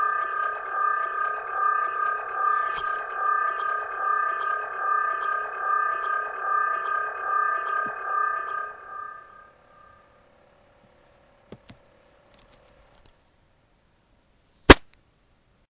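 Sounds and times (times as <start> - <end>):
electronic improvisation: 0.0 - 10.0.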